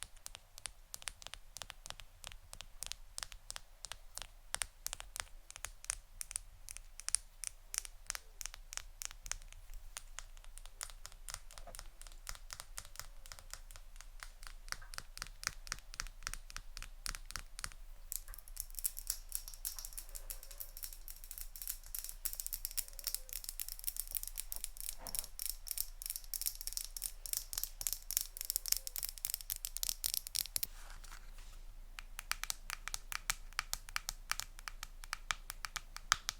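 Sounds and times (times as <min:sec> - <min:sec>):
fast ASMR tapping clicks: 0:00.0 - 0:30.7, 0:32.0 - 0:36.3
faint crinkling: 0:17.7 - 0:32.0.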